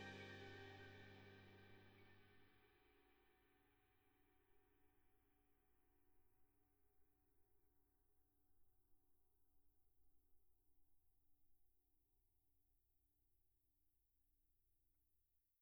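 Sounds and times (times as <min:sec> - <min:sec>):
ride cymbal: 0:00.0 - 0:01.7.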